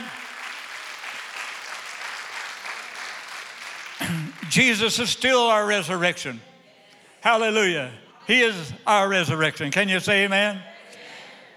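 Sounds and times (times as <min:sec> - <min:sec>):
audience clapping: 0:00.0 - 0:05.3
speech: 0:04.5 - 0:06.5, 0:07.2 - 0:10.7.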